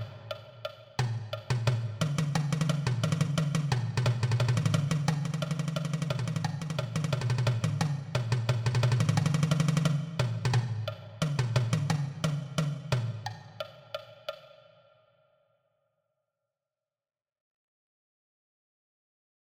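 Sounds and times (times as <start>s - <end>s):
marching tenor drums: 1.5s - 13.0s.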